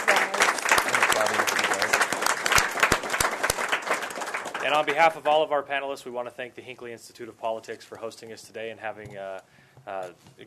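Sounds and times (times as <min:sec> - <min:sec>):
audience applause for the panelists: 0:00.0 - 0:05.3
speech: 0:04.7 - 0:10.4.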